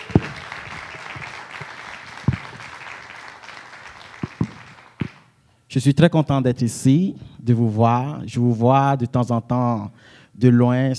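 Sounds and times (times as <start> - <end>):
church congregation applauding: 0.0 - 5.3
speech: 5.7 - 10.9.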